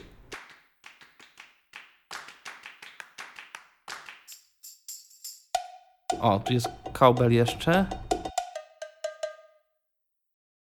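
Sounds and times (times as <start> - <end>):
drum sample claps: 0.0 - 9.4
drum sample stick hits: 5.3 - 9.5
speech: 6.2 - 8.0.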